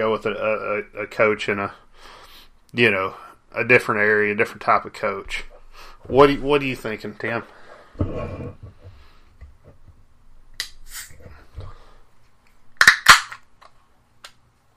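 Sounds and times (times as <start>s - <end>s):
speech: 0.0s - 8.6s
Pabst Blue Ribbon beer can being cracked open: 12.8s - 13.7s.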